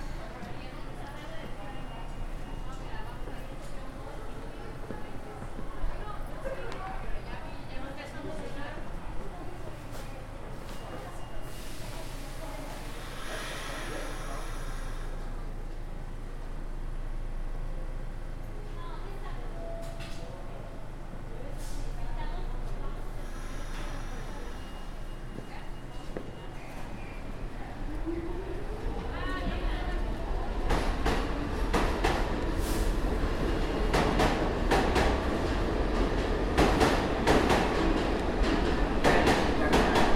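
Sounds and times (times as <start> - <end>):
New York City subway train: 0.0 - 40.1.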